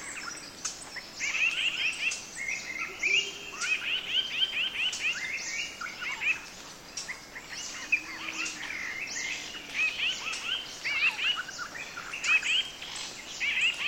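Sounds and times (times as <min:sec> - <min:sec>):
sunbird calls of sharp high thin chipping notes in a forest: 0:00.0 - 0:13.8.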